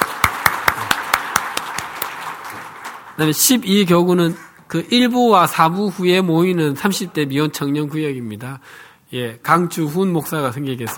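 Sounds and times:
audience clapping in welcome: 0:00.0 - 0:04.6
speech: 0:03.2 - 0:10.9.

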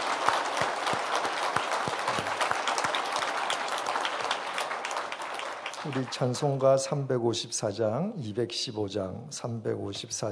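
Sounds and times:
audience applause: 0:00.0 - 0:07.1
speech: 0:05.8 - 0:10.2.

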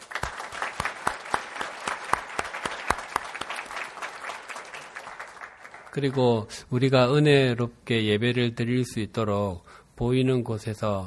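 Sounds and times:
audience applause: 0:00.0 - 0:06.4
speech: 0:06.0 - 0:11.0.

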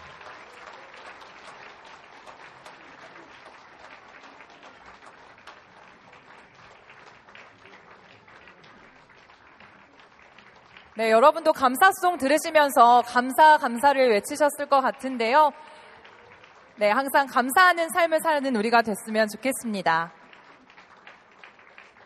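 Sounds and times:
audience applause: 0:00.0 - 0:11.8, 0:15.0 - 0:18.2, 0:20.1 - 0:22.0
speech: 0:11.0 - 0:15.7, 0:16.8 - 0:20.2.

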